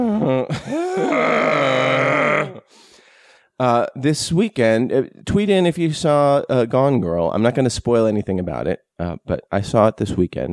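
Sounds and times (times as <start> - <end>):
alien creature roar sound effect: 0.8 - 2.6
speech: 3.6 - 10.5.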